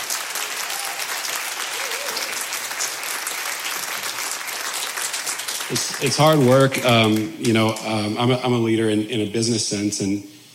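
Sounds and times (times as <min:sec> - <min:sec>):
audience round of applause: 0:00.0 - 0:08.0
speech: 0:05.7 - 0:10.3.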